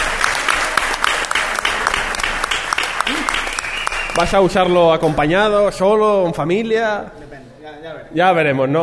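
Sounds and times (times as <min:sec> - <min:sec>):
audience applause: 0:00.0 - 0:05.1
speech: 0:04.2 - 0:08.8.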